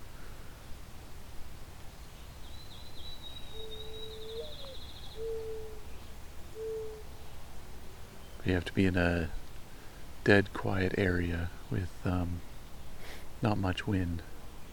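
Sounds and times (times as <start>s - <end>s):
mourning dove cooing: 3.5s - 5.9s, 6.5s - 7.1s
speech: 8.5s - 9.4s, 10.3s - 12.5s, 13.4s - 14.3s.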